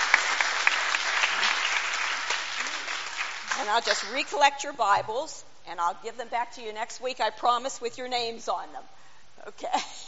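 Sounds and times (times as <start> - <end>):
audience applause: 0.0 - 4.2
speech: 3.6 - 10.0.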